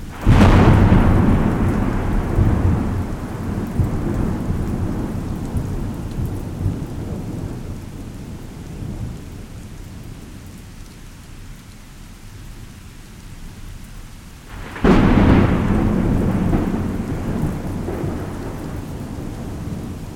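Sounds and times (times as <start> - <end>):
thunderstorm: 0.0 - 10.4, 14.5 - 20.1.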